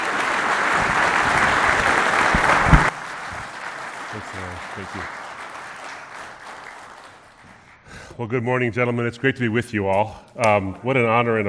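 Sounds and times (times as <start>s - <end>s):
audience applause welcoming a speaker to a morning men's gathering: 0.0s - 7.9s
speech: 4.3s - 5.2s, 8.2s - 11.4s.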